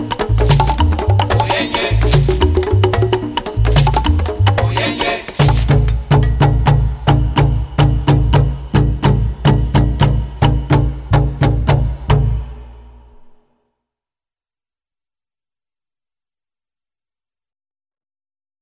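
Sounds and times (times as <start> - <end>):
three bata drums playing: 0.0 - 12.8.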